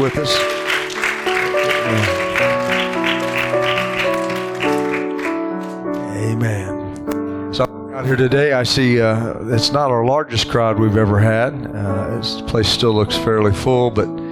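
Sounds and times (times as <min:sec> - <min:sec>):
speech: 0:00.0 - 0:00.6, 0:01.9 - 0:02.2, 0:08.0 - 0:14.2
audience clapping in welcome: 0:00.0 - 0:06.2
loud sustained organ-like chords: 0:00.0 - 0:14.3.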